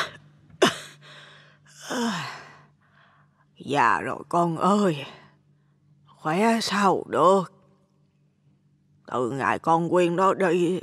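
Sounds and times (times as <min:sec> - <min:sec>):
dry cough: 0:00.0 - 0:01.0
speech: 0:03.7 - 0:05.2, 0:06.2 - 0:07.6, 0:09.1 - 0:10.8.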